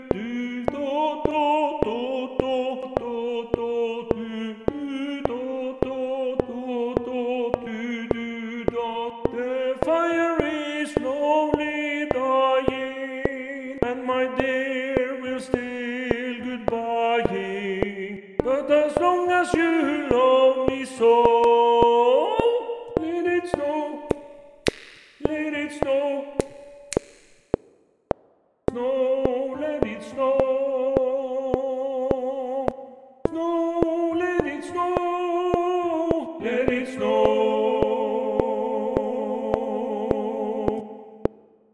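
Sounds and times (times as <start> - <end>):
tenor voice singing: 0.0 - 27.2, 28.7 - 41.4
metronome click: 24.1 - 25.4, 26.3 - 27.6.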